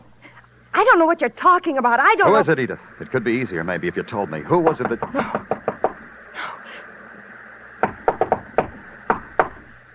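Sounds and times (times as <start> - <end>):
speech: 0.9 - 5.5
knocking on a door: 4.6 - 6.0, 7.8 - 9.7.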